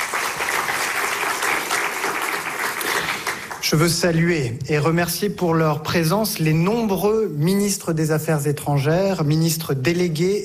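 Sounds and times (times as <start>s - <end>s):
audience applause: 0.0s - 3.7s
speech: 3.6s - 10.4s.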